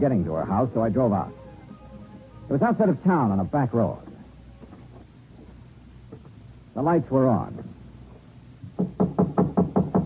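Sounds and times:
speech: 0.0 - 1.4, 2.5 - 4.1, 6.8 - 7.8, 8.8 - 9.1
knocking on the door of a house on a back road outside town: 8.6 - 10.0.

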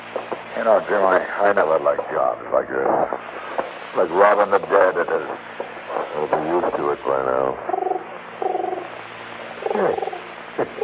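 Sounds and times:
speech: 0.6 - 7.8, 9.8 - 10.8
pigeon cooing on windowsill: 7.6 - 8.9, 9.6 - 10.8.

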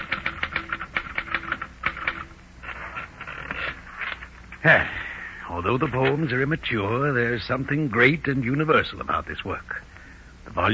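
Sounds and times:
typewriter typing: 0.0 - 4.2
speech: 4.6 - 9.9, 10.6 - 10.7.

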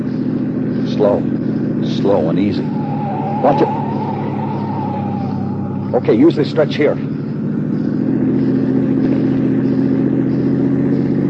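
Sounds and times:
car engine accelerating during a chase: 0.0 - 11.2
speech: 1.0 - 1.4, 2.0 - 3.8, 5.9 - 7.1.

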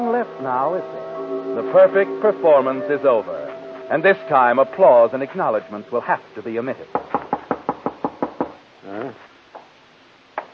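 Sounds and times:
speech: 0.0 - 7.0, 8.8 - 9.3
firm knocking on a door: 6.9 - 8.6.

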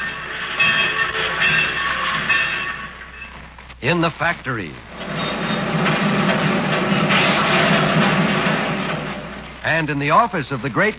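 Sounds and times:
faint metallic squealing of rolling stock: 0.0 - 3.6, 4.9 - 9.8
trains rumbling in a busy railroad yard as radio drama sound effect: 0.0 - 10.9
speech: 3.8 - 5.4, 9.6 - 10.9.

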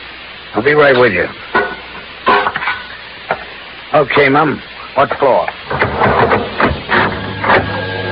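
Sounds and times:
speech: 0.5 - 1.8, 3.9 - 6.6
elevator running: 5.7 - 8.1.

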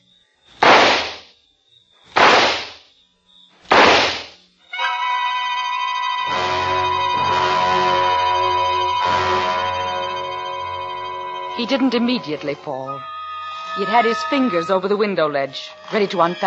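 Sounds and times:
gunshots fired at a man: 0.6 - 1.3, 2.2 - 2.8, 3.7 - 4.4
droning chord: 4.7 - 16.4
speech: 11.6 - 13.1, 13.7 - 16.4.

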